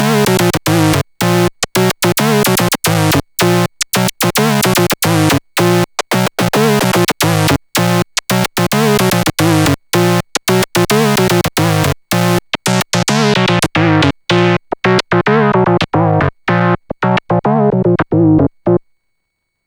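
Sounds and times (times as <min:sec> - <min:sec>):
musical jam with harmony: 0:00.1 - 0:18.8.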